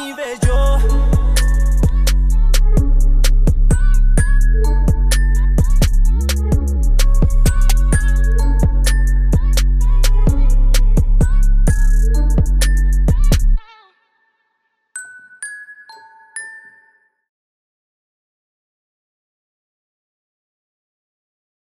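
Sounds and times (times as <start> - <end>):
deep bass: 0.4 - 13.6.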